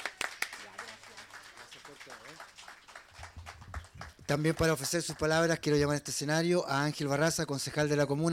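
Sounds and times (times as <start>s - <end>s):
audience applause: 0.0s - 5.8s
speech: 1.9s - 2.8s, 4.3s - 8.3s.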